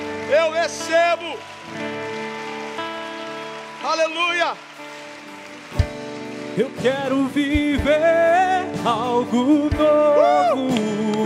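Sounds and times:
audience applauding: 0.0s - 8.6s
speech: 0.3s - 2.2s, 3.8s - 4.7s, 6.6s - 11.2s.

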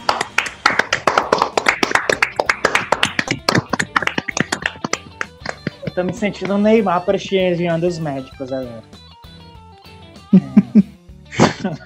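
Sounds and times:
round of applause: 0.0s - 5.9s
speech: 6.0s - 9.0s, 10.3s - 10.9s, 11.6s - 11.8s.

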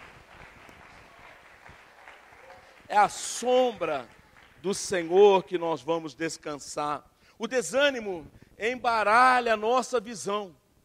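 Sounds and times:
audience applause: 0.0s - 4.8s
speech: 2.9s - 10.6s.

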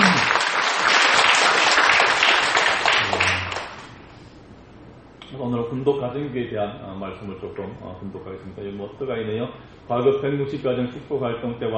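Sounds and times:
audience applause: 0.0s - 3.9s
speech: 5.8s - 11.7s.

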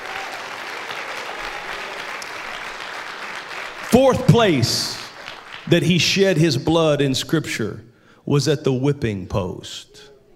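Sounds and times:
audience clapping hands: 0.0s - 6.4s
speech: 4.0s - 5.0s, 5.7s - 10.1s.

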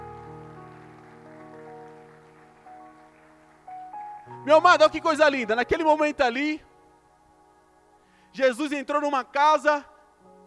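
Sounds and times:
audience applauding: 0.0s - 4.4s
speech: 4.4s - 6.7s, 8.4s - 9.9s.

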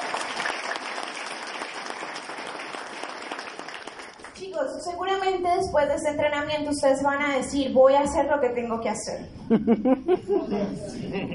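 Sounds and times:
audience applause: 0.0s - 4.4s
speech: 4.5s - 11.3s
laughter: 9.5s - 11.3s.

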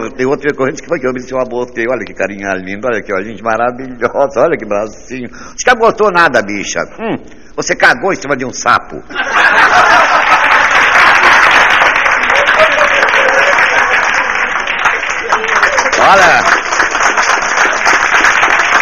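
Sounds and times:
speech: 0.1s - 10.1s
laughter: 9.1s - 16.0s
audience applause: 9.2s - 18.8s.

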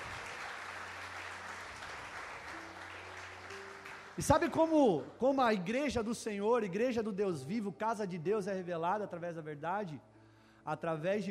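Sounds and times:
audience applauding: 0.0s - 5.2s
speech: 4.2s - 11.2s.

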